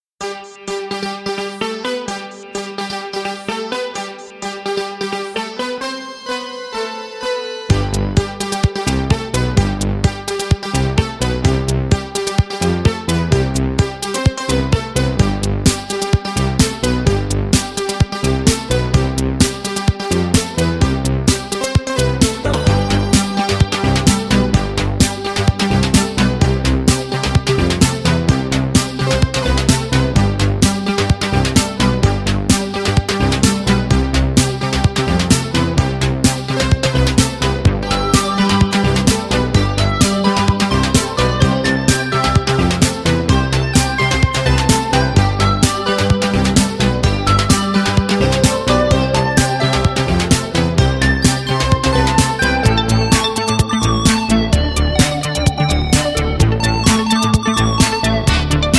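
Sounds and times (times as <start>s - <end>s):
synthesizer: 0.1s - 58.7s.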